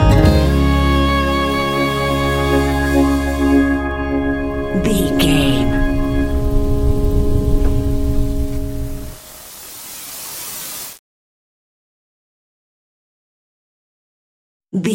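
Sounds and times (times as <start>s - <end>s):
easy listening music: 0.0s - 9.2s.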